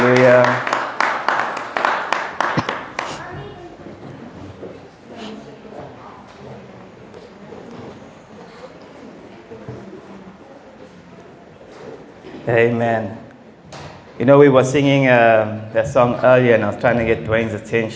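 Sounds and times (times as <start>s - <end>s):
audience clapping: 0.0s - 3.3s
speech: 12.5s - 13.2s, 14.2s - 17.9s.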